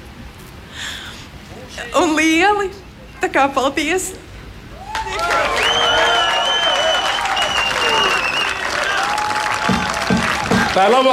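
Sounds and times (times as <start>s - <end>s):
speech: 1.8s - 4.3s, 10.8s - 11.1s
audience whoops and cheers: 4.7s - 10.8s
audience applause: 4.8s - 11.1s.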